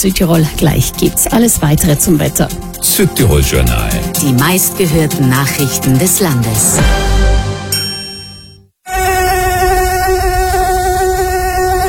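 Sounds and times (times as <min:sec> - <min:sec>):
speech: 0:00.0 - 0:07.3
mosquito buzzing: 0:08.8 - 0:11.8.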